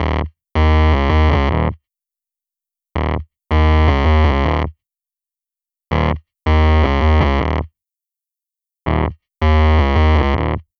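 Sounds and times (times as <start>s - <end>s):
fuzz bass: 0.0s - 1.8s, 3.0s - 4.7s, 6.0s - 7.7s, 8.9s - 10.7s.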